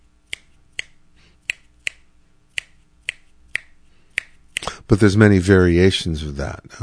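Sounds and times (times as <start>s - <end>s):
finger snaps tapping a clave rhythm: 0.3s - 4.8s
speech: 4.9s - 6.8s.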